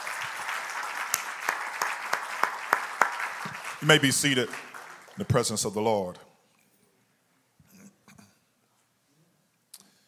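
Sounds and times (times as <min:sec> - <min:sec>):
audience clapping hands: 0:00.0 - 0:06.0
speech: 0:03.8 - 0:06.3.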